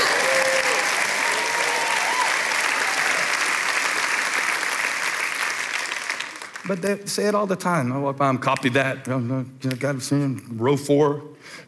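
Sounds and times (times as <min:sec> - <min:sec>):
large audience clapping: 0:00.0 - 0:07.0
speech: 0:06.7 - 0:11.6.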